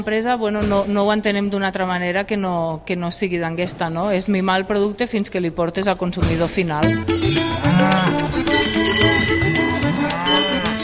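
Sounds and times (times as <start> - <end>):
speech: 0.0 - 10.8
cattle lowing: 7.2 - 10.8.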